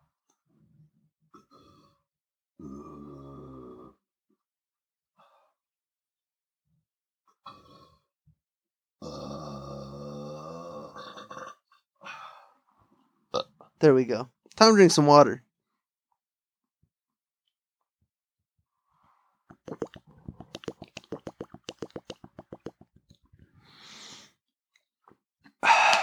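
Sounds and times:
person burping: 9.0s - 9.7s, 19.5s - 22.8s, 25.6s - 26.0s
speech: 13.8s - 15.5s.

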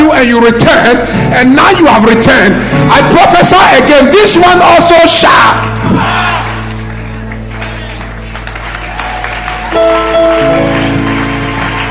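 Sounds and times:
speech: 0.2s - 6.3s
audience clapping: 5.6s - 11.8s.

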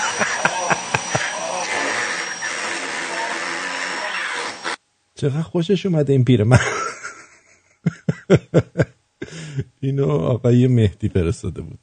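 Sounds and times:
laughter: 0.0s - 1.8s, 6.5s - 9.4s
vacuum cleaner making farting noises: 0.0s - 4.8s
speech: 5.2s - 6.8s, 9.8s - 11.8s.

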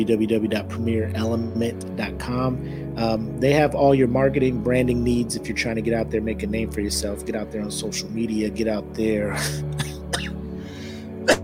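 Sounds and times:
speech: 0.0s - 9.9s
coughing into microphone: 9.4s - 10.4s, 11.2s - 11.4s.

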